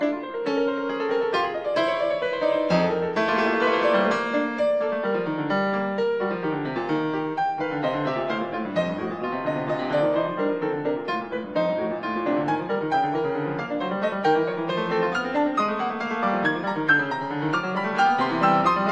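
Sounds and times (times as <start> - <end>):
piano sonata in B flat major: 0.0 - 18.9.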